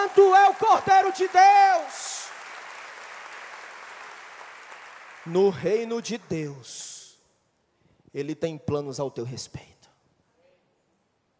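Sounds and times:
audience clapping: 0:00.0 - 0:06.2
speech: 0:00.1 - 0:02.2, 0:05.2 - 0:06.9, 0:08.1 - 0:09.7.

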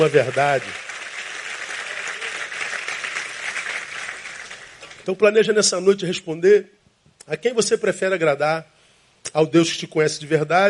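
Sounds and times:
speech: 0:00.0 - 0:00.9, 0:05.0 - 0:10.6
audience applause: 0:00.0 - 0:05.1.

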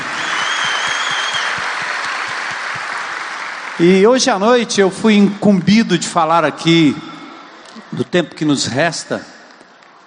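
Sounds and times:
audience applause: 0:00.0 - 0:04.9
speech: 0:03.8 - 0:07.1, 0:08.0 - 0:09.3.

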